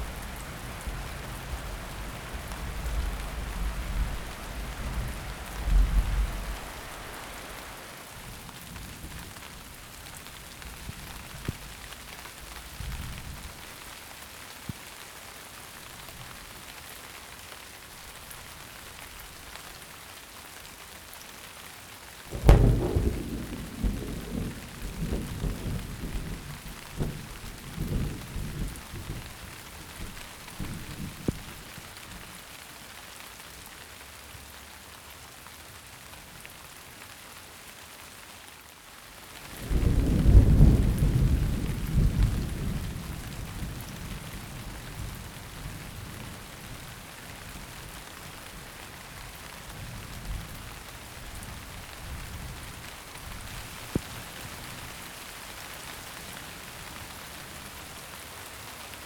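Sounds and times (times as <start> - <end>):
thunderstorm: 0.0 - 11.8, 22.3 - 31.9, 39.5 - 55.0.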